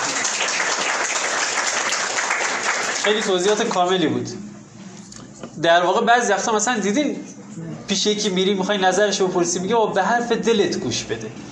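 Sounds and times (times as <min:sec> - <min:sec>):
audience applause after a talk: 0:00.0 - 0:03.8
speech: 0:03.0 - 0:04.5, 0:05.6 - 0:11.5.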